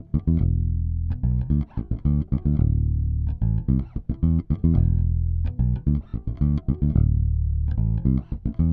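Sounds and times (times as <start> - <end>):
electric bass: 0.0 - 8.7.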